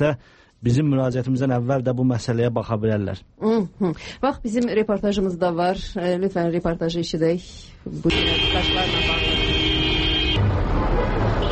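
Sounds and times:
speech: 0.0s - 9.4s
street traffic with a line of cars: 7.5s - 11.5s
car horn blast in street traffic: 8.1s - 11.5s.

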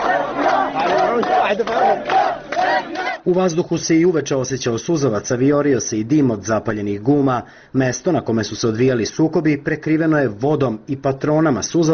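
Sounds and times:
large refugee crowd chanting in unison: 0.0s - 3.3s
speech: 1.2s - 11.9s.

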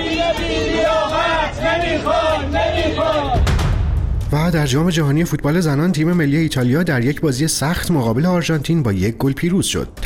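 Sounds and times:
Esteghlal football fans chanting protest slogans outside club building: 0.0s - 3.6s
speech: 4.3s - 10.0s.

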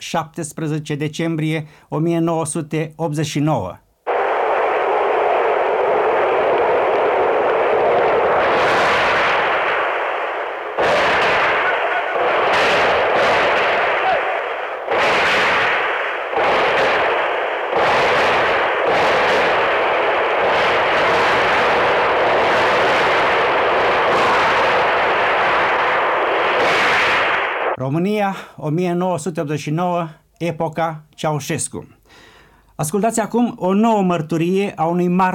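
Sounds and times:
speech: 0.1s - 3.8s, 28.6s - 35.3s
machine gun fire in street: 4.1s - 27.8s.

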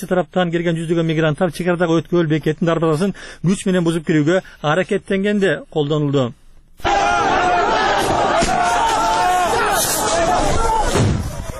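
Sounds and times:
speech: 0.0s - 6.9s
migrants shouting at the Greek–Macedonian border crossing gate: 6.8s - 11.5s.

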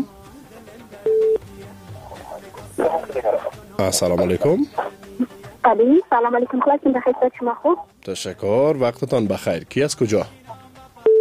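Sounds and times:
telephone line beep on a connected radio call-in: 1.1s - 1.4s, 11.0s - 11.2s
people talking faintly: 1.9s - 7.8s
speech: 3.8s - 4.9s, 5.7s - 10.4s.

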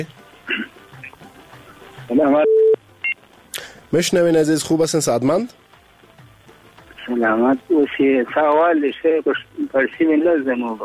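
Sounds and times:
faint telephone line hiss: 0.0s - 10.8s
speech: 2.1s - 2.6s, 3.9s - 5.6s, 7.1s - 10.8s
telephone tones dialing another call: 2.2s - 3.2s
telephone high beep: 2.3s - 3.2s.

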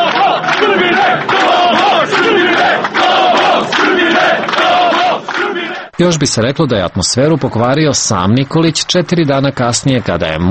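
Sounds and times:
large crowd chanting at victory celebration: 0.0s - 6.0s
speech: 6.0s - 10.4s.

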